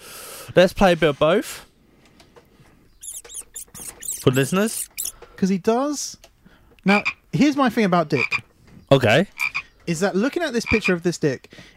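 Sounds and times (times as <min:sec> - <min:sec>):
speech: 0:00.5 - 0:01.7, 0:04.2 - 0:11.7
rat squeaks sound effect: 0:02.9 - 0:05.2
faint scrabbling patter: 0:03.0 - 0:05.3.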